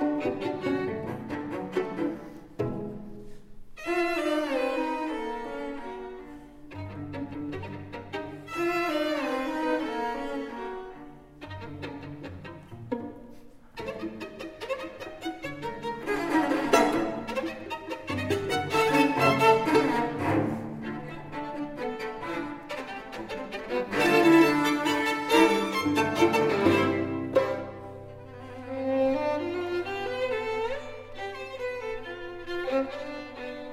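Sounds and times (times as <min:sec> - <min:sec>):
cello: 0:00.0 - 0:33.7
violin: 0:00.0 - 0:33.7.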